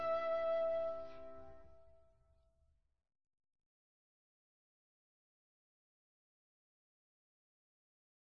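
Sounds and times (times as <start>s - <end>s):
instrumental music: 0.0s - 1.9s.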